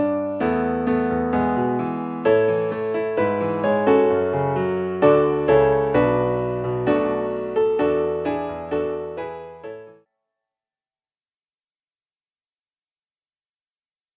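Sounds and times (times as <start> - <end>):
musical accompaniment: 0.0 - 10.0.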